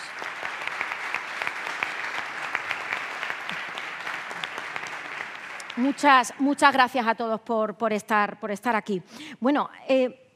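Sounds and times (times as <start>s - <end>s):
audience applause: 0.0s - 6.4s
speech: 5.8s - 10.2s.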